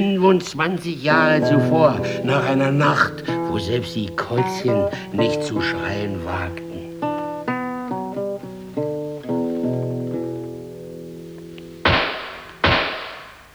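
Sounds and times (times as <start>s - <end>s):
speech: 0.0s - 6.6s
laughter: 0.0s - 7.3s
sustained musical notes: 0.0s - 13.5s
pistol shots: 11.8s - 13.5s.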